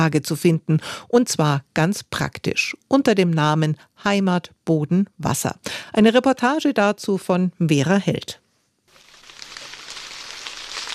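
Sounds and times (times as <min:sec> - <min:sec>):
speech: 0:00.0 - 0:08.4
light drizzle pattering on a maize field in Franconia: 0:08.9 - 0:10.9.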